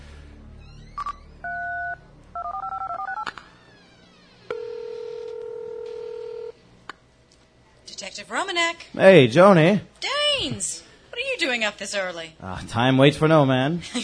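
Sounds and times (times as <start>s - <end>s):
phone ringing tone: 0.9s - 6.6s
speech: 8.1s - 10.8s, 11.4s - 14.0s.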